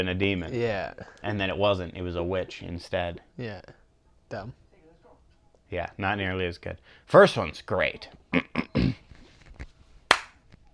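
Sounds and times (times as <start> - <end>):
speech: 0.0 - 4.6, 5.7 - 9.0
little clap: 10.1 - 10.6.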